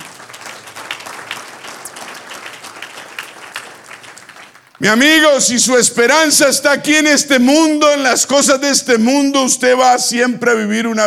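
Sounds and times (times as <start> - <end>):
audience applause: 0.0 - 4.8
speech: 4.8 - 11.0.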